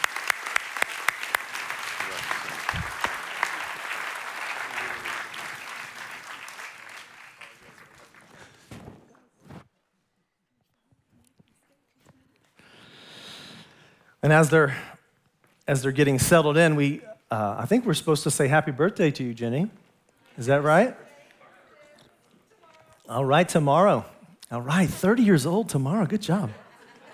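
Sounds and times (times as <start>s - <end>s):
audience applause: 0.0s - 8.7s
speech: 14.3s - 14.9s, 15.7s - 19.8s, 20.4s - 21.0s, 23.1s - 26.6s
laughter: 26.4s - 27.1s.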